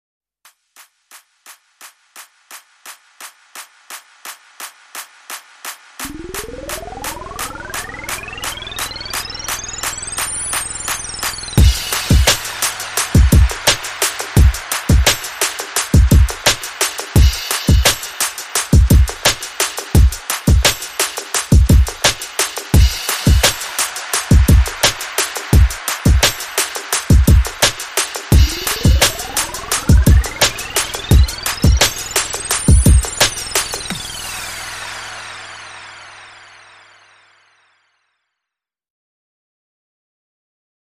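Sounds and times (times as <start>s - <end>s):
portable party beat: 1.1s - 36.0s.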